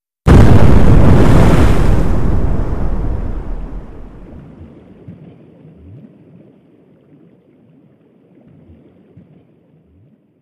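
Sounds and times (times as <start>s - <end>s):
underwater explosions: 0.3s - 6.2s.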